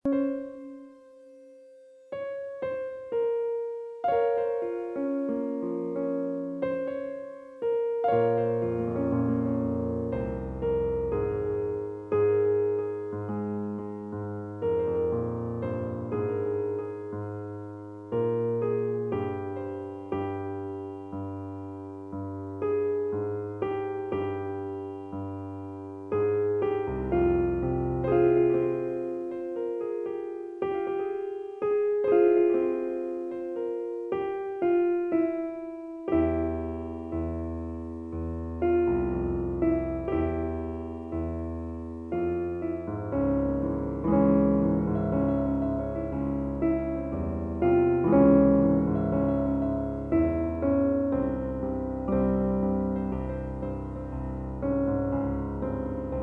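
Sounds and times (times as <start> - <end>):
piano: 0.0 - 56.2.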